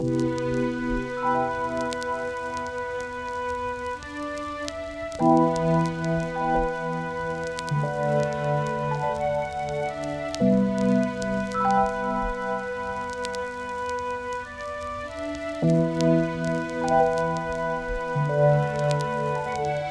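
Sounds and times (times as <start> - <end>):
instrumental music without vocals: 0.0 - 19.8.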